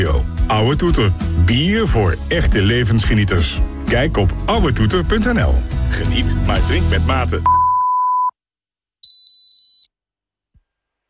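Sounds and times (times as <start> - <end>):
speech: 0.0 - 7.6
short beeps: 7.5 - 8.3, 9.0 - 9.9.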